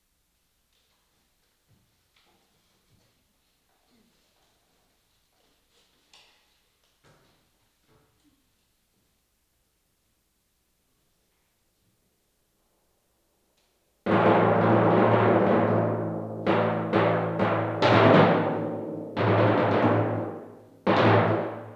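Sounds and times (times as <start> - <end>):
timpani solo: 14.1 - 21.7.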